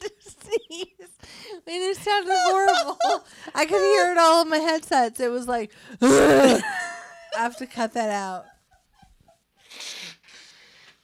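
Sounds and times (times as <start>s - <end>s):
speech: 1.7s - 6.8s, 7.4s - 8.5s
person blowing nose: 6.1s - 6.6s
soft sniffs: 9.6s - 11.0s.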